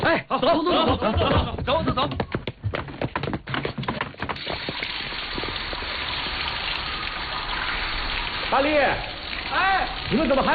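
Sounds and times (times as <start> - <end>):
laughter: 0.0 - 2.2
uneven splashing and clattering: 1.1 - 10.5
shower water running: 4.4 - 10.5
speech: 10.1 - 10.5.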